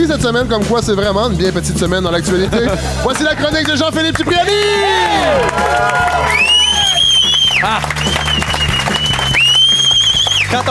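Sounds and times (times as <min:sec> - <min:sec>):
speech: 0:00.0 - 0:06.5, 0:07.6 - 0:08.4
man whistling in studio audience: 0:06.3 - 0:10.6.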